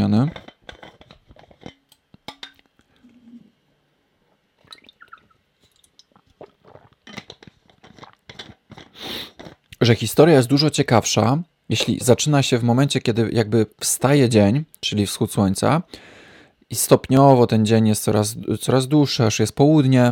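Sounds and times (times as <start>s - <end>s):
speech: 0.0s - 0.5s, 9.9s - 20.1s
speaker drinking water: 4.7s - 9.8s.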